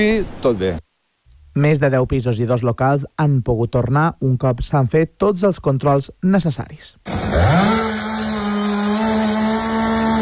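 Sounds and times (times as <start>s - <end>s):
speech: 0.0s - 0.8s, 1.6s - 7.8s
chainsaw of cleanup crews cutting fallen trees: 7.0s - 10.1s.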